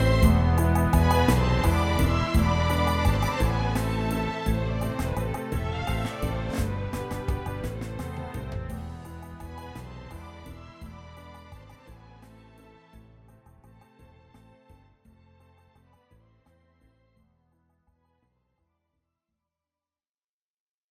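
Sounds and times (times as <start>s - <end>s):
orchestra: 0.0s - 13.8s.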